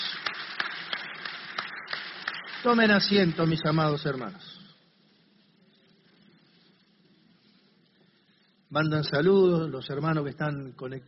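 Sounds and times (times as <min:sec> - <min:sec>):
audience applause: 0:00.0 - 0:04.4
speech: 0:02.6 - 0:04.5, 0:08.7 - 0:11.0.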